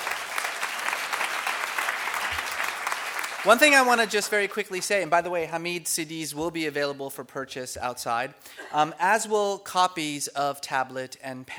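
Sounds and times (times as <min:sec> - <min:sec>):
audience applause: 0:00.0 - 0:04.7
speech: 0:03.4 - 0:11.5.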